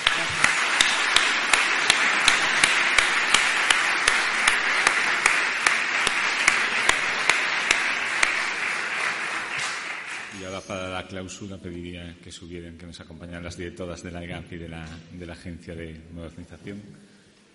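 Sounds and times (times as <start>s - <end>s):
audience applause: 0.0s - 10.6s
speech: 11.1s - 17.1s.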